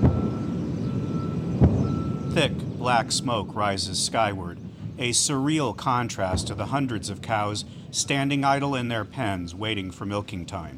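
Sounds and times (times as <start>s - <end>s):
explosions from airstrikes: 0.0s - 10.0s
speech: 2.4s - 10.7s.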